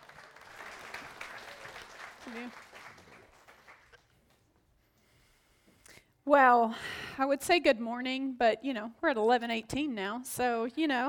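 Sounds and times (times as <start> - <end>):
audience applause welcoming a speaker's wife to the stage: 0.0 - 4.3
speech: 2.2 - 2.8, 6.3 - 11.0.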